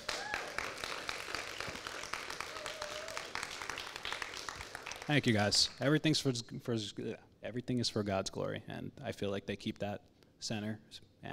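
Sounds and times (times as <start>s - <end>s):
audience round of applause: 0.0s - 5.3s
speech: 5.1s - 11.3s.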